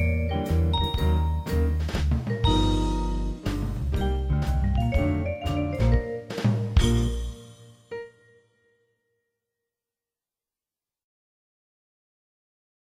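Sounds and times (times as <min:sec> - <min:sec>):
swing combo playing: 0:00.0 - 0:08.1.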